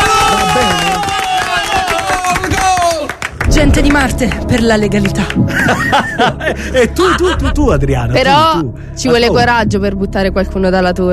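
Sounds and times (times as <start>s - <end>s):
crowd clapping: 0.0s - 5.4s
speech: 3.6s - 11.1s
laughter: 5.2s - 8.4s.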